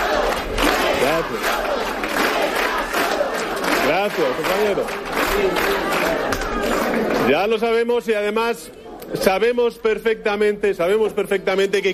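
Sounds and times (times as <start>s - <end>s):
crowd chanting in a hall: 0.0s - 7.3s
speech: 1.2s - 1.6s, 4.1s - 11.9s.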